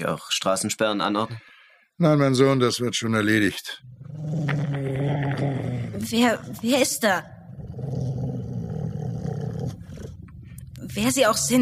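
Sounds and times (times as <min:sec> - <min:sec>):
speech: 0:00.0 - 0:04.8, 0:06.0 - 0:07.3, 0:10.9 - 0:11.6
dog growling: 0:03.8 - 0:10.6.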